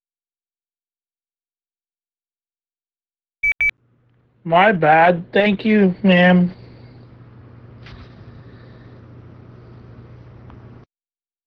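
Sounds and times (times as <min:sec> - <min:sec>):
phone beeping: 0:03.4 - 0:03.8
speech: 0:04.4 - 0:06.6.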